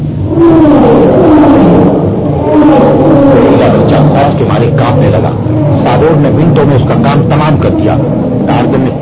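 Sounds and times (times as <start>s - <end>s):
big cat roaring: 0.2s - 8.9s.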